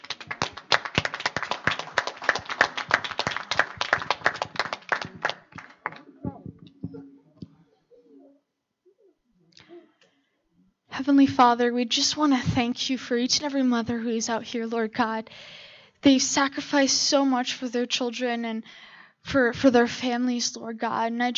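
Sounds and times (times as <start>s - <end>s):
audience applause: 0.0s - 6.7s
speech: 11.1s - 21.3s.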